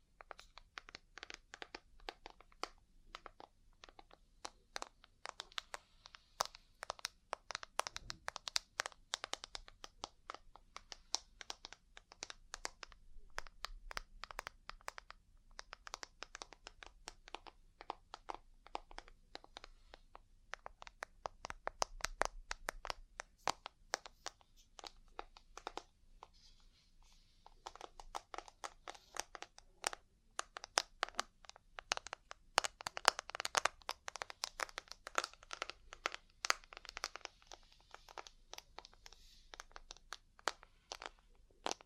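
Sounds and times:
ear cleaning crackling and scratching clicks: 0.1s - 41.8s.

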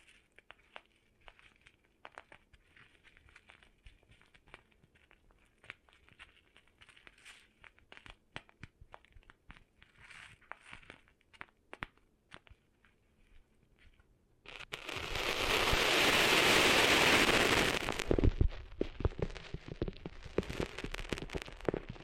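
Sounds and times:
ear cleaning scratches and crackles: 14.5s - 22.0s
loud dense rough hissing friction: 14.7s - 21.8s.

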